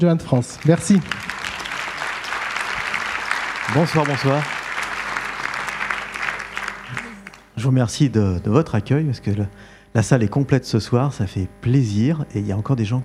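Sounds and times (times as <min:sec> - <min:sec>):
speech: 0:00.0 - 0:01.3, 0:03.7 - 0:04.6, 0:07.6 - 0:13.0
audience applause: 0:00.0 - 0:07.6.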